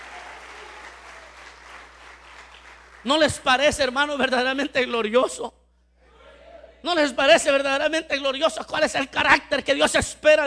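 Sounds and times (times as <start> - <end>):
church congregation at a Spanish-language service applauding: 0.0 - 3.8
speech: 3.0 - 5.6, 6.8 - 10.4.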